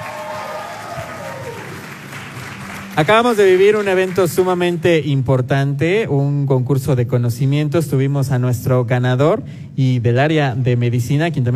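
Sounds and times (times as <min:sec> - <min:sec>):
audience applause: 0:00.0 - 0:04.8
speech: 0:03.0 - 0:11.5.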